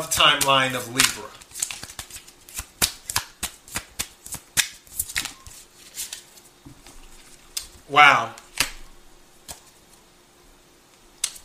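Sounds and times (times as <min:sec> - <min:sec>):
speech: 0:00.0 - 0:01.4, 0:07.9 - 0:08.4
tarot cards being shuffled by hand: 0:00.2 - 0:07.8, 0:08.4 - 0:08.8.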